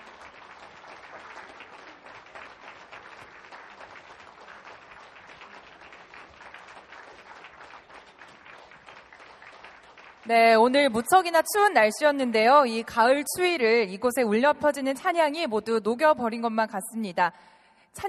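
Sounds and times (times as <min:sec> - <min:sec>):
audience applause: 0:00.0 - 0:10.3
speech: 0:10.3 - 0:18.0.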